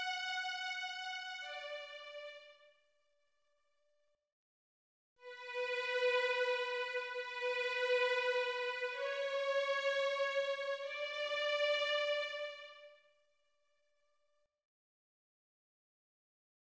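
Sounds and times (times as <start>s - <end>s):
violin piece for children: 0.0s - 2.6s, 5.2s - 12.9s.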